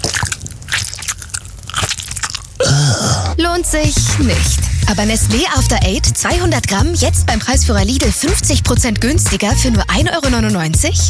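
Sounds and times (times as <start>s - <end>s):
person crunching on peppermint tea bags: 0.0s - 3.3s
speech: 3.0s - 11.0s.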